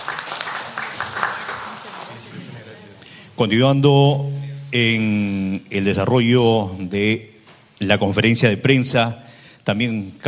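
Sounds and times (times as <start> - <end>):
audience applause: 0.0 - 2.7
speech: 3.4 - 10.2.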